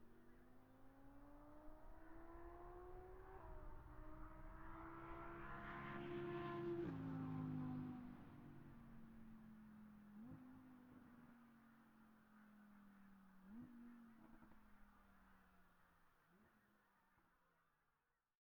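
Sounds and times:
distant 2017 Audi R8 driving fast, exterior: 0.8s - 11.8s.

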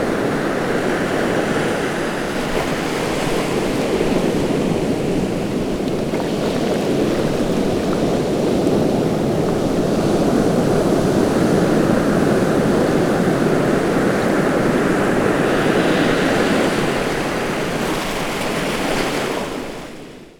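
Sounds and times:
ocean surf on coastal rocks close: 0.2s - 20.0s.

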